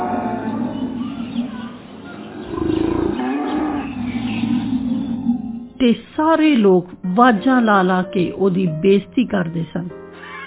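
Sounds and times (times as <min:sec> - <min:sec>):
livestock lowing as the animals head toward Noah's ark: 0:00.0 - 0:05.8
speech: 0:05.8 - 0:10.0.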